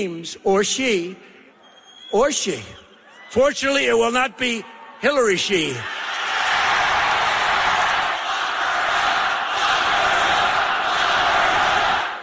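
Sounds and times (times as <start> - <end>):
speech: 0.0 - 1.3, 2.1 - 6.2
crowd chanting at a Donald Trump rally: 5.9 - 12.2.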